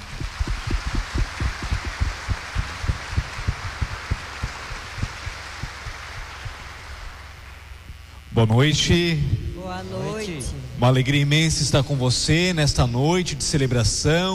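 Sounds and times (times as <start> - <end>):
warm round of applause: 0.0 - 7.6
speech: 8.4 - 14.3.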